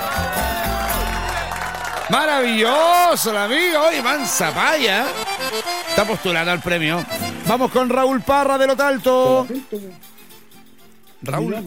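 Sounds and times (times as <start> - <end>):
audience applause: 0.0 - 9.1
speech: 2.1 - 10.1, 11.2 - 11.6.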